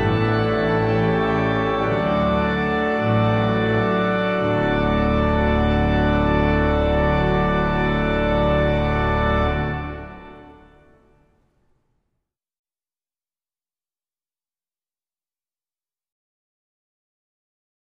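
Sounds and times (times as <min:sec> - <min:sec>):
trumpet piece: 0:00.0 - 0:11.1.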